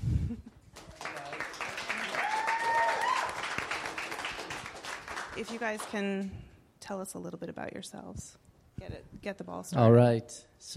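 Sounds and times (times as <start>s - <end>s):
audience applause welcoming two guests: 0.8s - 6.0s
speech: 5.4s - 10.7s.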